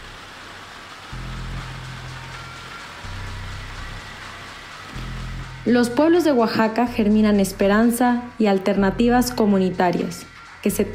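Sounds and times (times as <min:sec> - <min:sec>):
rain falling: 0:00.0 - 0:10.9
speech: 0:05.7 - 0:10.9.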